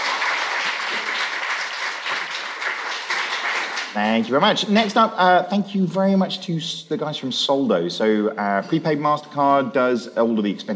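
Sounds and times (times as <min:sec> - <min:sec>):
audience applause: 0:00.0 - 0:04.2
speech: 0:04.0 - 0:10.7.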